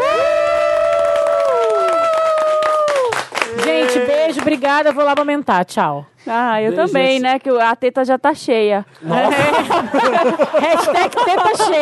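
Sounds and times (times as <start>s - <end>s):
applause: 0.0s - 5.3s
speech: 4.6s - 11.8s
laughter: 9.0s - 11.8s.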